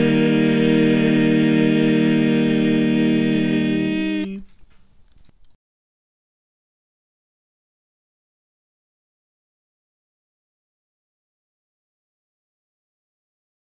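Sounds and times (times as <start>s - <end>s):
soprano alto tenor bass choir singing: 0.0s - 4.5s.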